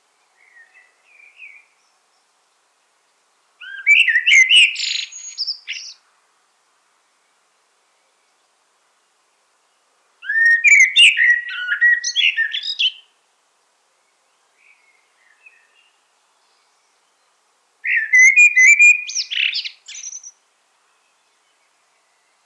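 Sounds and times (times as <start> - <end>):
common blackbird whistled song: 0.4 - 1.9, 3.6 - 6.0, 10.2 - 13.1, 14.6 - 22.4.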